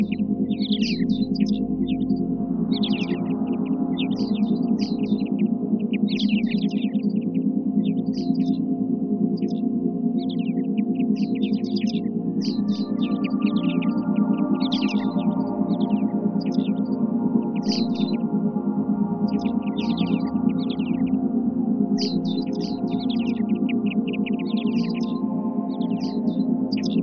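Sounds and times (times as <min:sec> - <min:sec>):
forest sounds: 0:00.0 - 0:08.7, 0:09.3 - 0:27.0.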